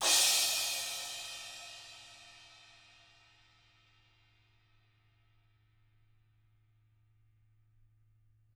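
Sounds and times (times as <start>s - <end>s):
TAMA drums: 0.0s - 3.4s.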